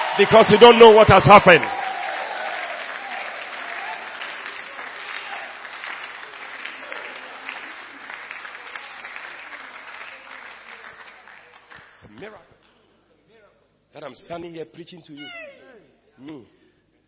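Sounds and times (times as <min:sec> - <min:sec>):
audience clapping: 0:00.0 - 0:12.9
speech: 0:00.2 - 0:01.8, 0:14.2 - 0:15.6, 0:16.2 - 0:16.6.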